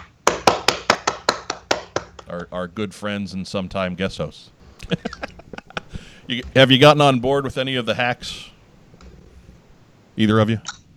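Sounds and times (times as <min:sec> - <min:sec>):
hand claps: 0:00.0 - 0:02.3
speech: 0:02.3 - 0:05.4, 0:06.3 - 0:08.5, 0:10.2 - 0:10.8
laughter: 0:04.6 - 0:07.0.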